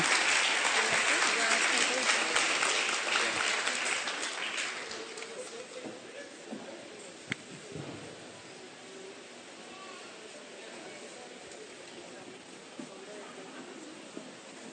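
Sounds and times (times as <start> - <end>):
crowd applauding: 0.0 - 6.1.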